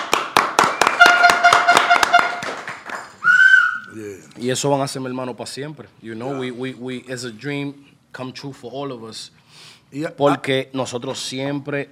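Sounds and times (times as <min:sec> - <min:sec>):
people clapping: 0:00.0 - 0:03.8
speech: 0:04.0 - 0:11.9.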